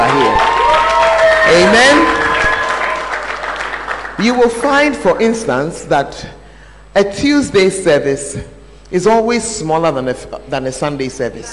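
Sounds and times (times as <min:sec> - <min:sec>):
audience clapping: 0:00.0 - 0:04.7
speech: 0:01.5 - 0:02.2, 0:04.2 - 0:06.4, 0:07.0 - 0:11.5.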